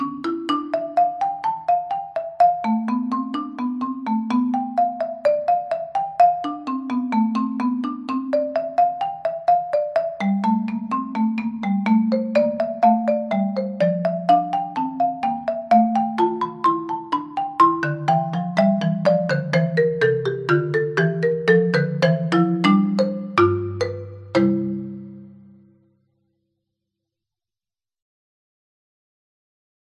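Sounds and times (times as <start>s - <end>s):
marimba solo played with mallets: 0.0s - 25.7s.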